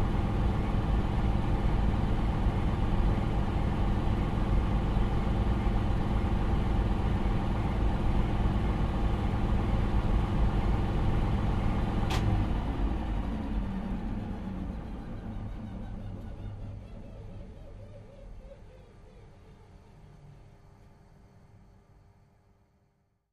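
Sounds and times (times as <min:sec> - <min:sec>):
industrial ventilation fan in a factory: 0:00.0 - 0:22.6.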